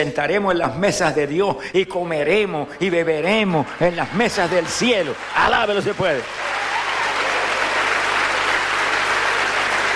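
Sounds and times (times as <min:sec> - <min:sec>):
speech: 0:00.0 - 0:06.6
audience applause: 0:03.8 - 0:09.9.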